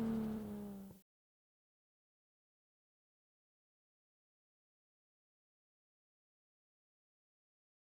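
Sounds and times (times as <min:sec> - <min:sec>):
Supra exhaust: 0:00.0 - 0:01.0.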